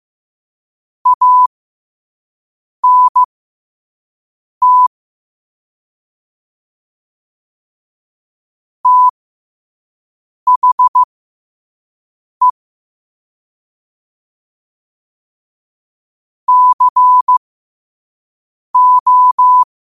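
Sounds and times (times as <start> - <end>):
morse code at 5 wpm: 1.1 - 1.5, 2.8 - 3.3, 4.6 - 4.9, 8.9 - 9.1, 10.5 - 11.1, 16.5 - 17.4, 18.8 - 19.7.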